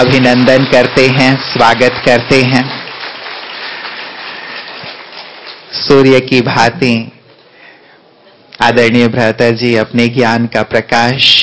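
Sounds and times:
speech: 0.0 - 2.8, 5.7 - 7.2, 8.6 - 11.4
audience applause welcoming a respected guest: 0.0 - 6.0.

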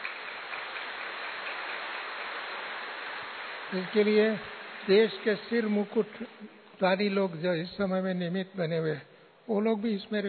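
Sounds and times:
audience clapping loudly: 0.0 - 6.2
speech: 3.7 - 10.2.

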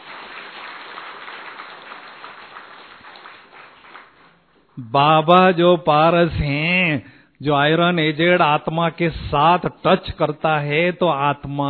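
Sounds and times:
audience clapping: 0.0 - 4.8
speech: 4.8 - 11.6.

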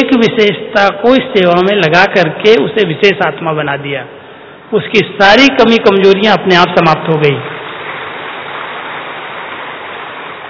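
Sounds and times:
speech: 0.2 - 7.6
audience clapping: 7.6 - 10.4.

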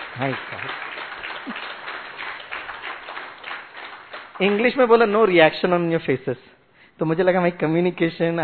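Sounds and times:
audience clapping: 0.0 - 6.1
speech: 0.2 - 1.8, 4.4 - 8.4.

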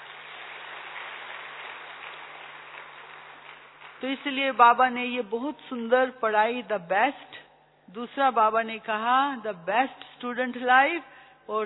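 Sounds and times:
audience clapping: 0.0 - 4.3
speech: 4.0 - 11.6.

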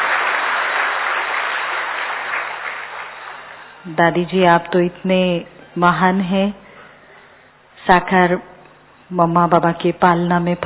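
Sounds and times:
audience applause greeting a revered elder guest: 0.0 - 3.8
speech: 3.8 - 6.6, 7.9 - 8.5, 9.1 - 10.6.

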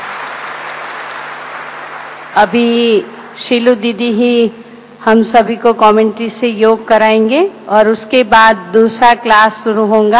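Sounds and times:
audience clapping at a spiritual gathering: 0.0 - 2.4
speech: 2.4 - 10.1.

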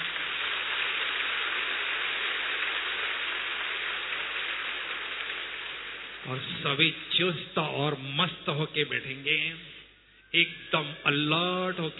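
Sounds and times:
audience clapping loudly: 0.0 - 7.0
speech: 6.3 - 9.7, 10.3 - 11.9.

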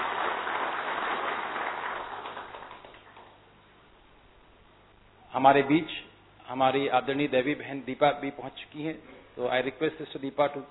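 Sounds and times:
loud audience applause: 0.0 - 3.4
speech: 5.3 - 10.6.

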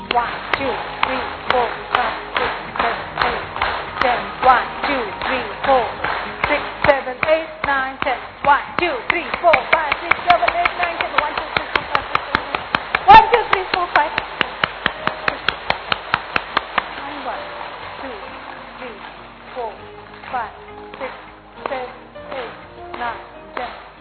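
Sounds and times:
group clap routine hand clapping: 0.0 - 24.0.

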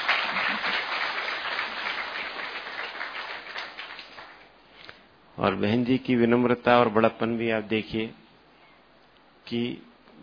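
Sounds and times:
crowd applauding: 0.0 - 4.5
speech: 5.4 - 8.2, 9.5 - 10.2.

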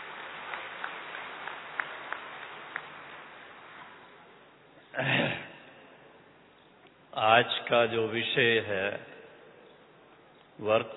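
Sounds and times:
scattered faint claps: 0.0 - 4.0
low hiss: 0.0 - 10.9
speech: 5.0 - 5.4, 7.2 - 9.1, 10.6 - 10.9.

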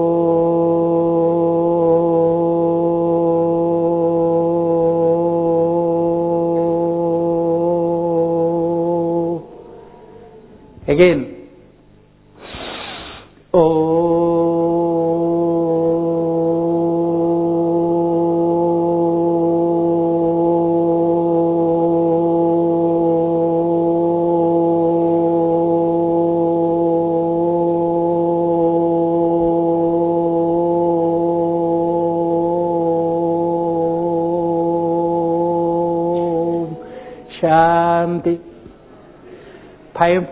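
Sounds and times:
person chanting long Om: 0.0 - 11.5, 12.4 - 38.7, 39.8 - 40.3
speech: 10.9 - 11.3
quick breath: 12.4 - 13.4, 39.2 - 39.9.

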